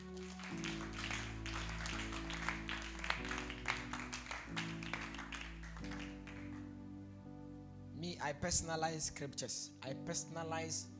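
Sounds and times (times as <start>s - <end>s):
audience clapping: 0.0s - 6.8s
speech: 8.2s - 10.9s.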